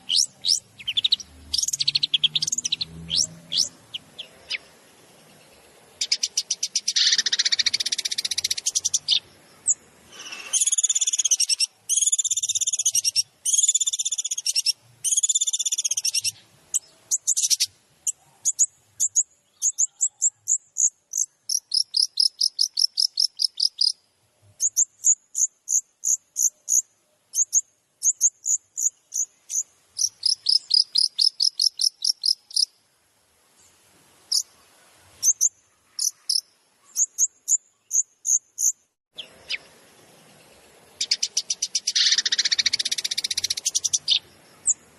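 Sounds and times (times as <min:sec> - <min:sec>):
shrike-type bird song: 0:00.0 - 0:32.8, 0:33.6 - 0:44.9.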